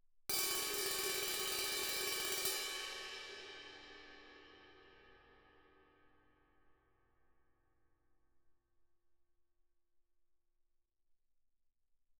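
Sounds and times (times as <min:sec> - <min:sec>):
18-inch crash cymbal: 0:00.3 - 0:05.7.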